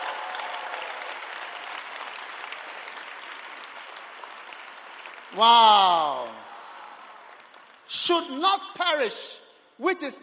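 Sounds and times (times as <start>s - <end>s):
crowd applause: 0.0s - 7.9s
speech: 5.3s - 6.4s, 7.9s - 10.2s.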